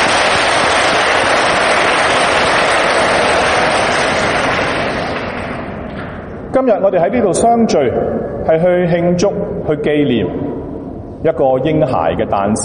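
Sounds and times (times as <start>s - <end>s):
crowd applause: 0.0s - 5.8s
speech: 6.6s - 10.5s, 11.2s - 12.6s.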